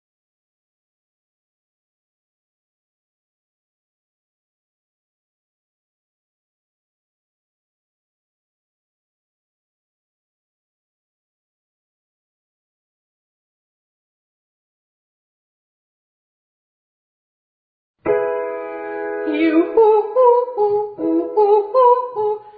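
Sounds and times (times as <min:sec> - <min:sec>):
ascending triads in octaves to high D flat: 0:18.1 - 0:21.5.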